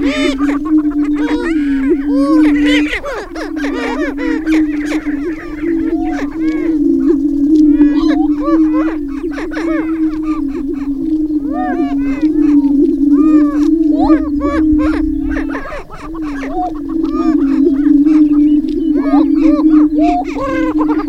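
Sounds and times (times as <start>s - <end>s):
greater prairie chickens booming: 0.0s - 21.0s.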